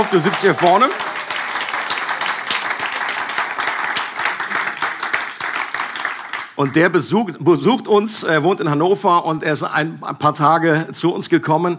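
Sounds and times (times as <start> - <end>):
speech: 0.0 - 1.1, 6.6 - 11.7
audience applause: 0.0 - 6.8.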